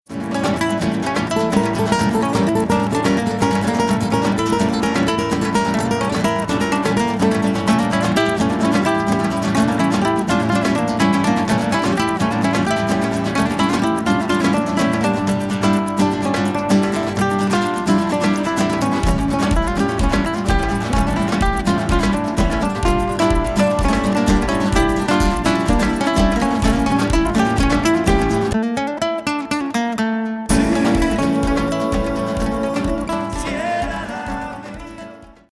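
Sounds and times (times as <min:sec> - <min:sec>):
Spanish rhythm: 0:00.1 - 0:35.5.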